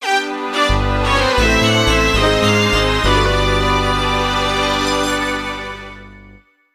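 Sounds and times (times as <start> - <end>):
game over music: 0.7 - 6.4.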